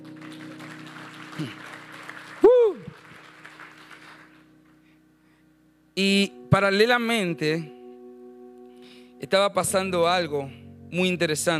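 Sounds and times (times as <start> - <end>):
audience clapping: 0.0 - 4.8
speech: 1.4 - 1.7, 6.0 - 7.8, 9.2 - 11.5.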